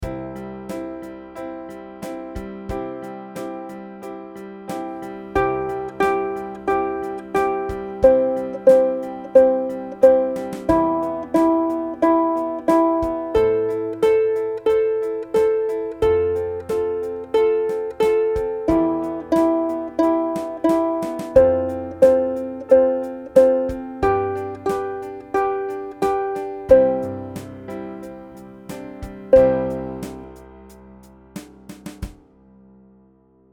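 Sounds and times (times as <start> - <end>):
slow ukulele music: 4.8 - 31.6.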